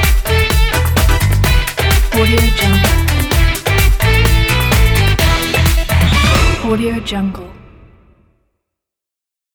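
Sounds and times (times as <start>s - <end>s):
elite action percussion: 0.0s - 7.3s.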